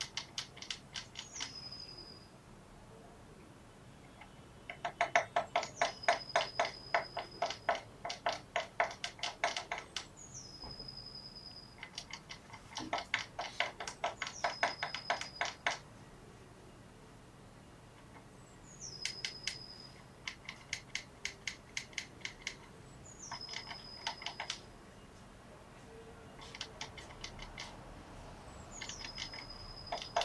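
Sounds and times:
Eurasian blue tit thin whistle and clicking notes: 0.0 - 1.8, 4.7 - 11.0, 11.7 - 15.8, 18.9 - 22.6, 23.2 - 24.6, 28.8 - 30.2.

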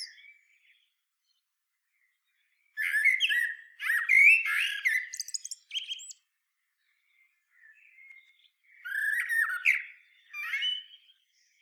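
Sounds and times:
common blackbird Turdus merula song: 0.0 - 11.6.

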